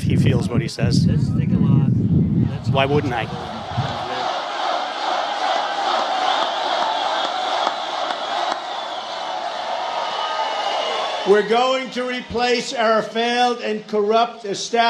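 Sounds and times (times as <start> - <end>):
speech: 0.1 - 1.6, 2.3 - 4.0, 11.2 - 14.8
large crowd cheering at a rally: 2.6 - 13.1
whoops: 6.4 - 11.8.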